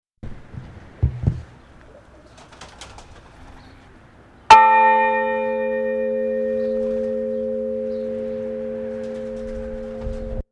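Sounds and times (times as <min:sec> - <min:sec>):
bell ringing: 0:04.5 - 0:10.4.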